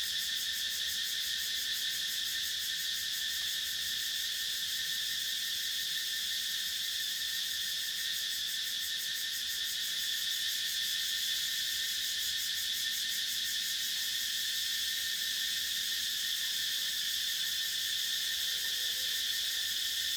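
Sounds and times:
forest cicadas and other insects buzzing at night in a forest in Thailand: 0.0s - 20.1s.

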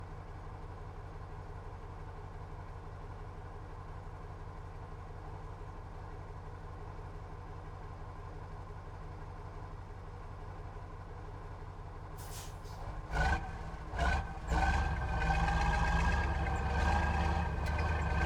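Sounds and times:
Ural 4320 diesel truck engine starting, idling and driving: 12.2s - 18.2s.

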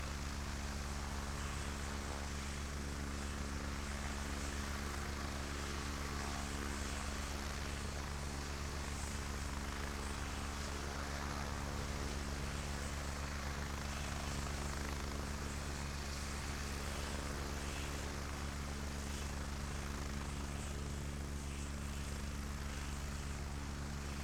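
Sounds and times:
Agusta A109 helicopter turbine idling: 0.1s - 24.1s.

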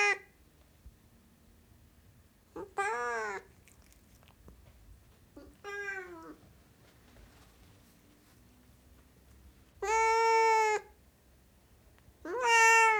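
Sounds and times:
Siamese cat meowing loudly: 2.6s - 3.5s, 5.4s - 6.4s, 9.8s - 10.9s, 12.2s - 12.9s.

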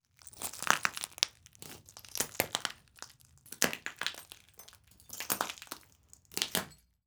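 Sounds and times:
glass: 0.3s - 6.8s.

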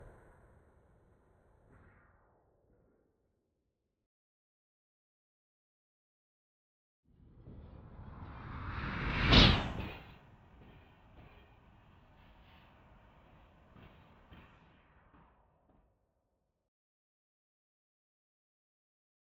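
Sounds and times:
train passing by with Doppler effect: 8.0s - 15.1s.

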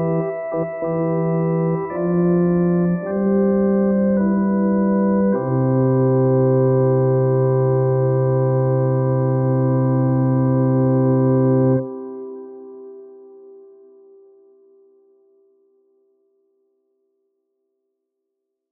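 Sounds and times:
ambient music for a funeral home: 0.0s - 14.5s.

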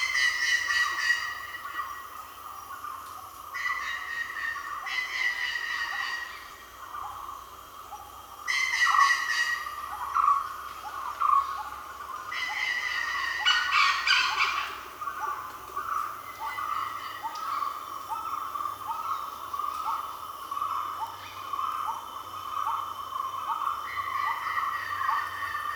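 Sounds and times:
jungle birds passing in the evening in South India: 0.0s - 2.6s, 13.4s - 20.4s
jungle insects in the evening in South India: 0.0s - 25.7s.

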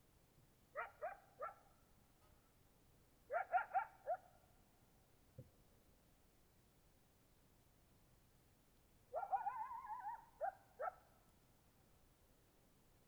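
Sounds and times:
coyote barks in Oregon: 0.7s - 1.7s, 3.3s - 4.4s, 9.1s - 11.0s.

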